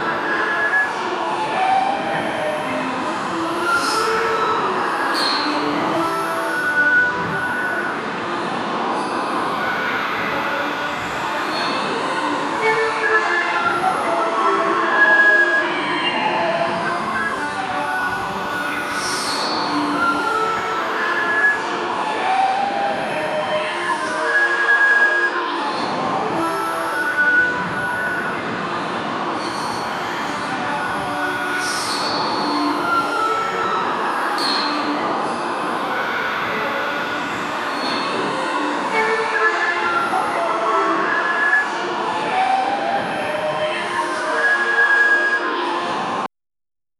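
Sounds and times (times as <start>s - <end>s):
park ambience: 0.0s - 46.3s.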